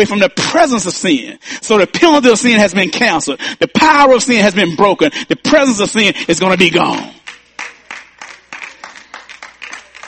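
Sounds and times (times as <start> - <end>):
speech: 0.0 - 7.3
few people clapping: 6.5 - 10.0.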